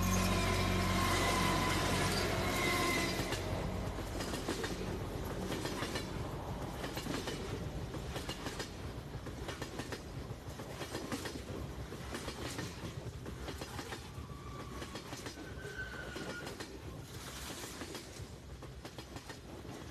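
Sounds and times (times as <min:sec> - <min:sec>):
thin metallic squeals of train wheels: 0:00.0 - 0:03.6, 0:14.2 - 0:16.6
train rolling along rails: 0:00.0 - 0:19.8.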